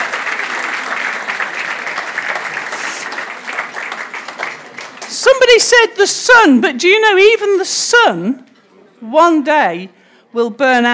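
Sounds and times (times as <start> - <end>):
audience applause: 0.0 - 5.2
speech: 5.3 - 8.5, 9.1 - 10.9.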